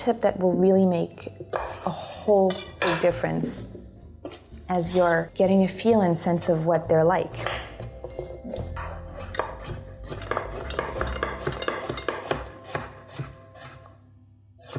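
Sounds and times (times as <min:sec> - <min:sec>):
speech: 0:00.0 - 0:03.8, 0:04.7 - 0:07.7
kitchen utensils clinking and scraping: 0:01.6 - 0:03.6, 0:10.1 - 0:12.4
knife chopping vegetables on a board: 0:09.2 - 0:13.8.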